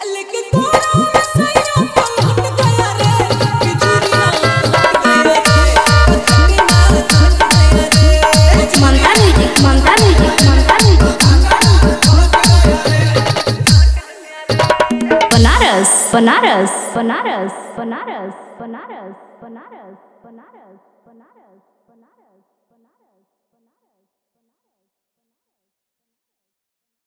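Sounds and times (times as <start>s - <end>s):
Bhojpuri DJ remix song with hard vibration mix: 0.0s - 17.0s.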